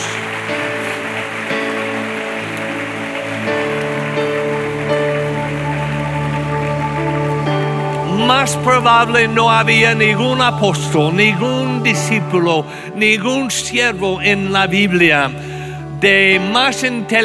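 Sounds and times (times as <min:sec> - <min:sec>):
audience applause: 0:00.0 - 0:13.3
sustained musical tones: 0:00.0 - 0:17.2
speech: 0:08.3 - 0:17.2.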